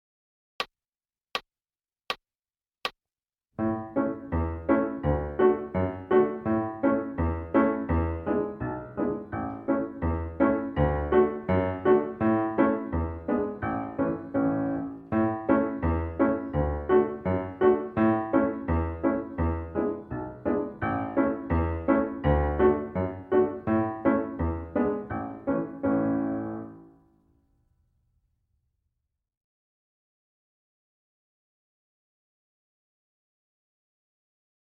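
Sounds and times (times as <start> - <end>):
piano: 3.6 - 27.7.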